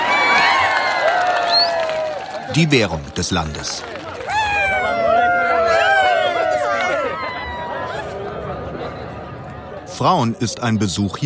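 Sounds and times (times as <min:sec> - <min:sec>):
high whoops: 0:00.0 - 0:02.4, 0:04.2 - 0:08.2
crowd cheering a wrestling winner: 0:00.0 - 0:09.9
speech: 0:02.6 - 0:04.0, 0:10.0 - 0:11.2.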